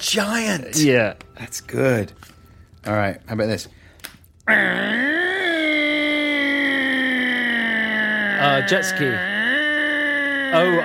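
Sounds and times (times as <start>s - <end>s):
speech: 0.1s - 3.8s, 4.5s - 5.2s, 8.4s - 9.3s, 10.5s - 10.8s
voice imitating a chainsaw: 4.7s - 10.8s.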